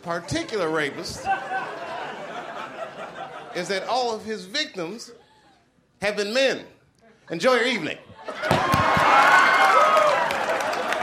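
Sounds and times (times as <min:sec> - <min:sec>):
speech: 0:00.0 - 0:01.8, 0:03.6 - 0:05.2, 0:06.0 - 0:08.3
laughter: 0:00.0 - 0:04.1, 0:07.4 - 0:09.2
audience clapping: 0:08.4 - 0:11.0.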